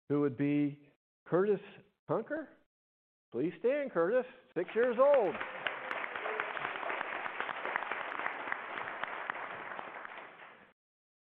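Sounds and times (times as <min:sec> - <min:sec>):
speech: 0:00.1 - 0:02.6, 0:03.3 - 0:05.7
audience applause: 0:04.6 - 0:10.8.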